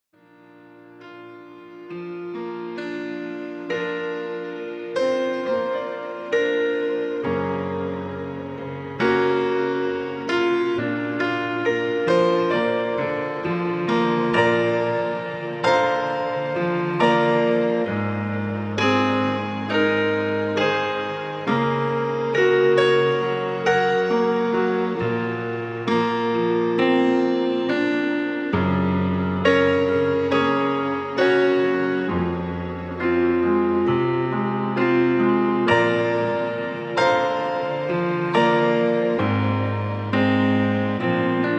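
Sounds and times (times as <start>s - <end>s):
relaxed emotional piano music: 0.2s - 41.5s.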